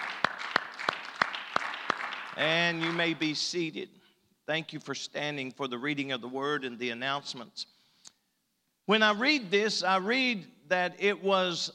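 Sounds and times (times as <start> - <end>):
audience hand clapping: 0.0 - 3.3
speech: 2.4 - 7.8, 8.9 - 11.7.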